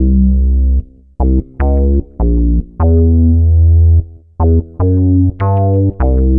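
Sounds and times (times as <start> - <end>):
punchy bass: 0.0 - 6.3.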